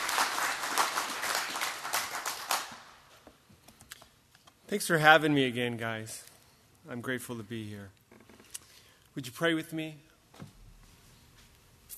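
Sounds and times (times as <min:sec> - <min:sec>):
audience applauding to welcome a pastor: 0:00.0 - 0:03.0
speech: 0:04.7 - 0:08.0, 0:09.2 - 0:10.5.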